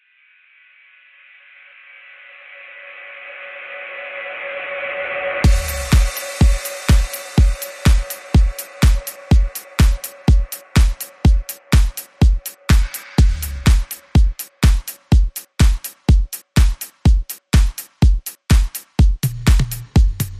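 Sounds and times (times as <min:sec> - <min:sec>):
music beat: 0:05.4 - 0:20.3.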